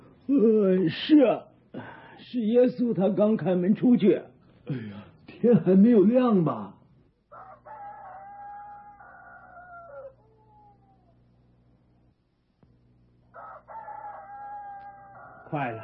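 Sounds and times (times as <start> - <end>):
steady low hum: 0.0 - 15.8
speech: 0.3 - 1.5, 2.2 - 6.8, 15.5 - 15.8
rooster crowing at dawn: 7.3 - 11.4, 13.3 - 15.8.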